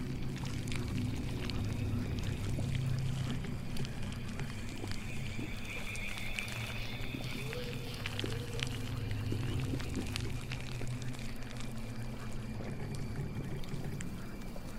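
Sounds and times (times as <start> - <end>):
thick low drone in a witch's swamp house ambience: 0.0 - 14.7
thin wavering tone: 0.0 - 14.7
bright warbling call: 4.9 - 10.1.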